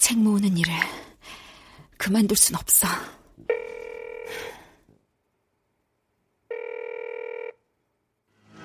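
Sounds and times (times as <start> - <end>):
speech: 0.1 - 1.0, 2.1 - 3.1
telephone ringing: 3.5 - 4.5, 6.5 - 7.6.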